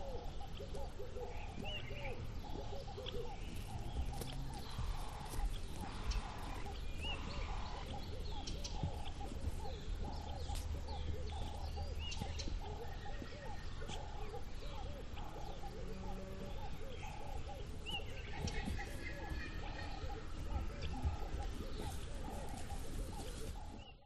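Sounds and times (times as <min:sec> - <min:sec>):
country birds calling: 0:00.0 - 0:24.0.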